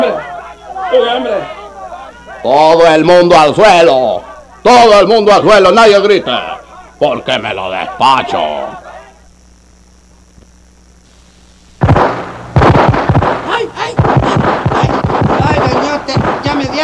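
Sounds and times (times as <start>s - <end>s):
speech: 0.9s - 1.6s, 2.4s - 8.8s, 16.1s - 16.8s
gunshots fired into the air: 11.8s - 16.8s.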